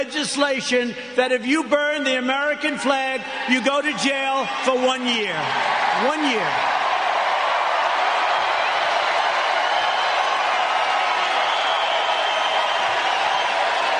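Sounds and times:
speech: 0:00.0 - 0:06.8
crowd cheering: 0:03.2 - 0:13.9.

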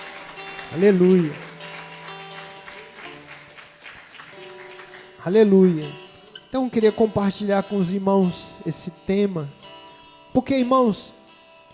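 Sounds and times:
audience applause: 0:00.0 - 0:06.0
speech: 0:00.7 - 0:01.4, 0:05.2 - 0:09.6, 0:10.3 - 0:11.2.

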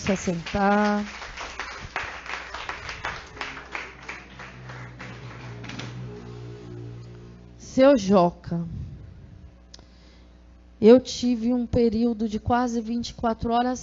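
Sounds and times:
speech: 0:00.0 - 0:01.2, 0:07.8 - 0:08.8, 0:10.8 - 0:13.8
audience clapping: 0:00.0 - 0:07.3.

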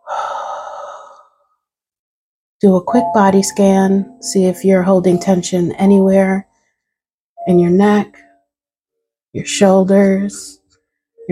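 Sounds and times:
deep breath during a Reiki guided meditation: 0:00.0 - 0:01.4
speech: 0:02.6 - 0:06.5, 0:07.4 - 0:08.3, 0:09.3 - 0:10.6.

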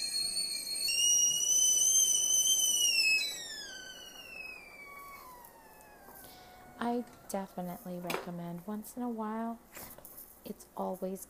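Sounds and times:
whistling kettle boiling: 0:00.0 - 0:08.1
speech: 0:06.9 - 0:09.9, 0:10.5 - 0:11.2.

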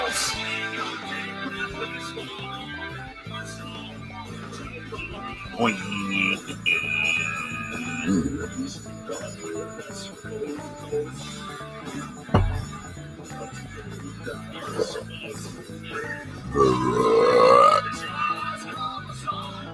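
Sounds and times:
steady music: 0:00.0 - 0:19.7
loud drawn-out burp: 0:08.0 - 0:08.6, 0:16.4 - 0:18.0
sharp thump: 0:12.3 - 0:13.0.

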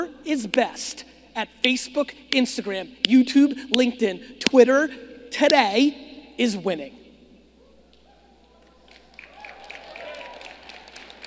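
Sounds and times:
speech: 0:00.0 - 0:07.0
thin scattered applause from an audience: 0:08.4 - 0:11.2.

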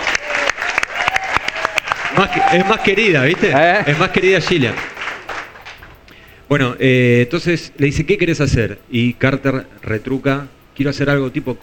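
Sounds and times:
audience applause: 0:00.0 - 0:05.8
speech: 0:02.2 - 0:04.9, 0:06.5 - 0:11.6.

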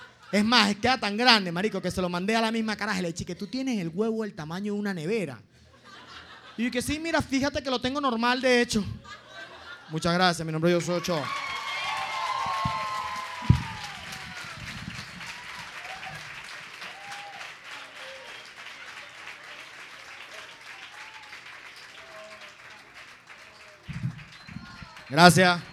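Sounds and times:
laughter: 0:00.0 - 0:02.2, 0:05.6 - 0:07.6, 0:08.7 - 0:11.4
speech: 0:00.3 - 0:05.5, 0:06.6 - 0:09.2, 0:09.9 - 0:11.4, 0:25.2 - 0:25.7
audience applause: 0:10.8 - 0:25.7.

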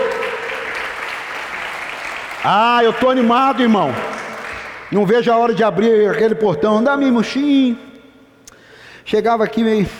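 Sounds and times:
audience applause: 0:00.0 - 0:05.1
speech: 0:02.4 - 0:04.2, 0:04.9 - 0:07.9, 0:09.1 - 0:09.9.

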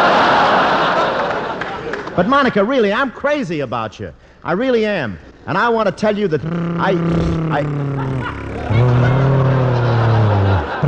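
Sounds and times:
laughter: 0:00.0 - 0:02.2, 0:06.4 - 0:10.8
speech: 0:02.2 - 0:09.2
voice imitating a motorcycle: 0:06.2 - 0:10.8
crowd murmur: 0:06.4 - 0:10.8.

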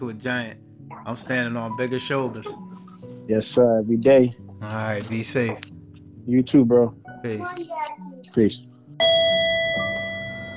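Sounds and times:
speech: 0:00.0 - 0:09.2
elevator arrival chime: 0:09.0 - 0:10.5.

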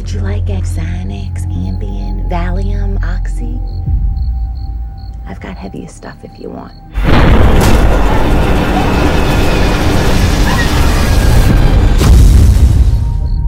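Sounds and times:
speech: 0:00.1 - 0:04.0, 0:05.3 - 0:08.9
plane crash explosion: 0:07.0 - 0:13.3.

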